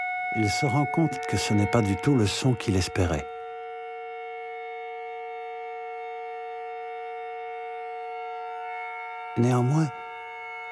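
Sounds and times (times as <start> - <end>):
kettle whistling: 0.0 - 3.2
speech: 0.3 - 3.3, 9.4 - 10.0.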